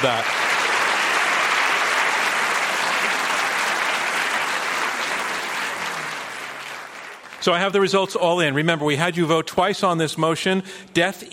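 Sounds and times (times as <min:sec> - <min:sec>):
speech: 0:00.0 - 0:00.4, 0:07.4 - 0:11.3
audience applause: 0:00.0 - 0:07.6.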